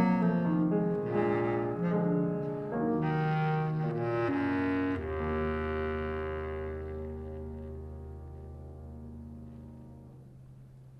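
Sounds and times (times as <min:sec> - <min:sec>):
bass clarinet playing a gypsy song: 0:00.0 - 0:10.2.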